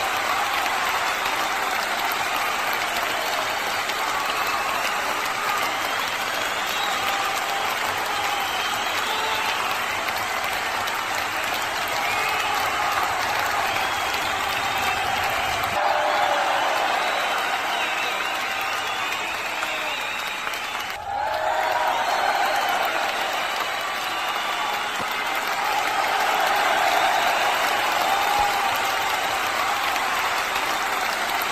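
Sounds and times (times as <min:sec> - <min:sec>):
applause: 0:00.0 - 0:31.4.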